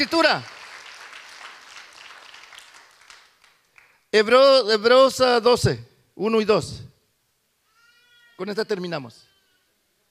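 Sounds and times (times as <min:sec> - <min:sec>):
speech: 0:00.0 - 0:00.6, 0:04.1 - 0:06.9, 0:08.4 - 0:09.3
crowd applause: 0:00.0 - 0:04.0.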